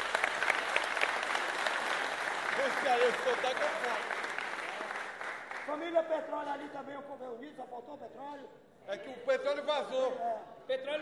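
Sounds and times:
applause: 0.0s - 6.2s
speech: 2.6s - 4.2s, 5.7s - 10.9s.

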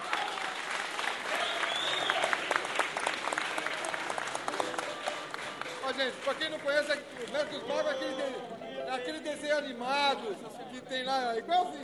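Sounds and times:
crowd applause: 0.0s - 8.2s
speech: 6.0s - 11.8s.

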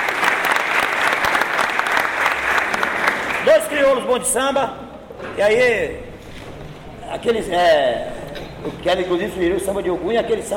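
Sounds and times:
audience applause: 0.0s - 3.8s
speech: 3.9s - 6.0s, 7.1s - 10.5s.

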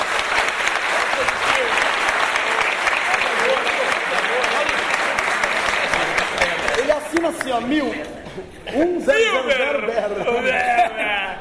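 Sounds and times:
audience applause: 0.0s - 7.8s
laughter: 3.1s - 11.3s
speech: 7.6s - 10.7s.

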